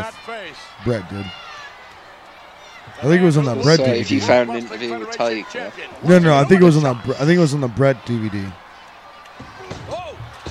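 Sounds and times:
commentators talking: 0.0 - 10.4
wrestling crowd noise: 0.0 - 10.4
speech: 0.3 - 1.5, 2.8 - 8.6
punches to the face in a pro wrestling match: 9.4 - 10.4.

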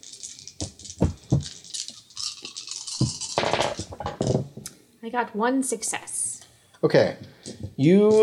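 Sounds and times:
handful of dice rattling and clattering: 0.0 - 4.2
speech: 5.0 - 6.2, 6.8 - 8.2.

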